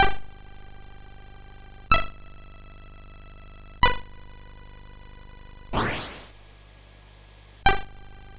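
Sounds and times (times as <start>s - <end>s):
game remake chiptune on SID MOS6581R4: 5.8s - 6.3s.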